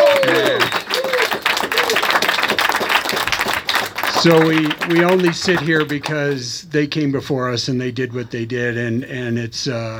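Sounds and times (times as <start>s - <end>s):
audience applause: 0.0s - 6.4s
speech: 4.2s - 9.9s.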